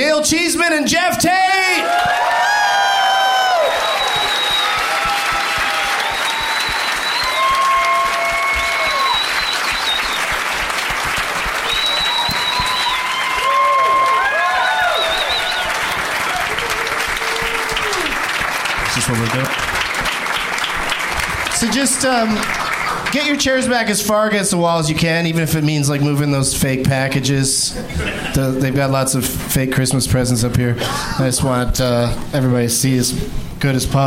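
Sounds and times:
speech: 0.0s - 2.0s, 19.1s - 19.6s, 21.6s - 34.0s
audience cheering and whoops: 1.7s - 18.5s
audience applause: 1.8s - 23.5s.

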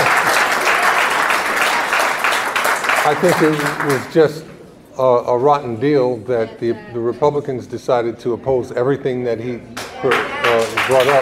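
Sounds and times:
audience applause: 0.0s - 4.2s, 9.8s - 11.2s
speech: 3.1s - 11.2s.

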